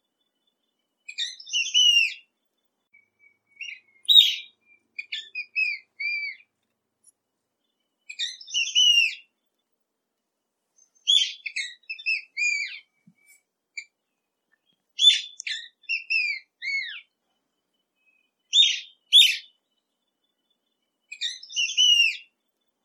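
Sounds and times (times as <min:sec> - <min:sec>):
scaled woodcreeper song: 0:00.0 - 0:22.8.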